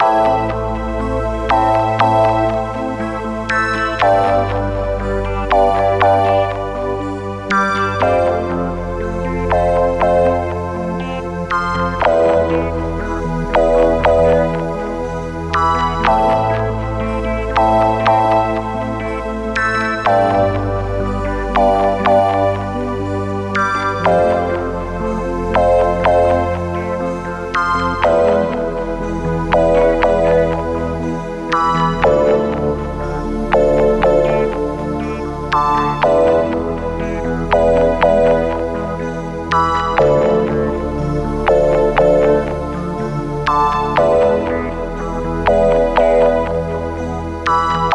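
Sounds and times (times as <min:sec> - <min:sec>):
sci-fi faltering circuits: 0:00.0 - 0:47.9.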